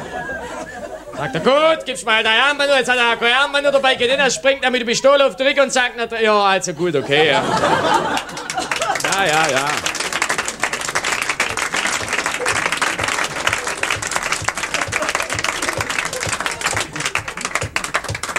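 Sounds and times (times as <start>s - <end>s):
laughter: 0.0s - 18.3s
speech: 1.2s - 8.5s, 9.2s - 10.0s
audience clapping: 7.3s - 18.3s.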